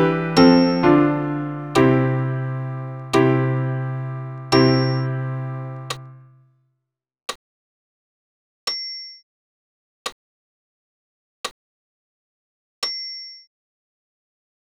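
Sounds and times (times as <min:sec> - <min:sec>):
piano piece: 0:00.0 - 0:06.3.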